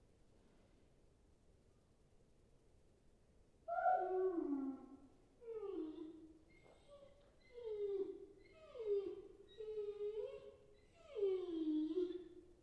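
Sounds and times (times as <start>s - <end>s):
puppy whining: 3.7s - 12.4s.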